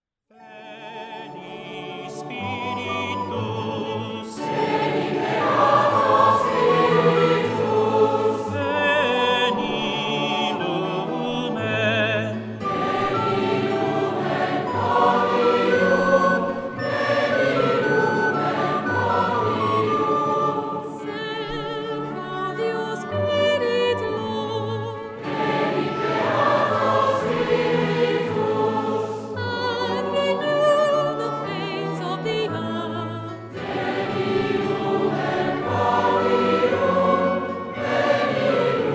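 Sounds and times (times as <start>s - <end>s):
choir singing: 0.4s - 38.9s.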